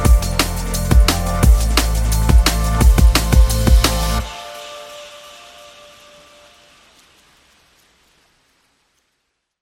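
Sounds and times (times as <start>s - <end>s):
drum and bass music: 0.0s - 6.5s.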